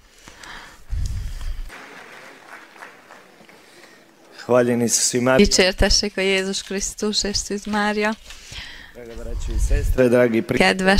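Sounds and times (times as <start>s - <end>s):
audience applause: 1.7s - 5.2s
speech: 4.5s - 10.9s.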